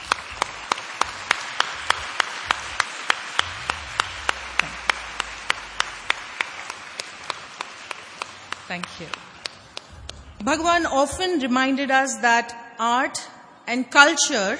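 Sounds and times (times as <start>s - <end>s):
audience applause for honorees: 0.0s - 10.4s
sharp evenly timed clap: 0.0s - 11.4s
speech: 8.7s - 9.3s, 10.4s - 14.5s.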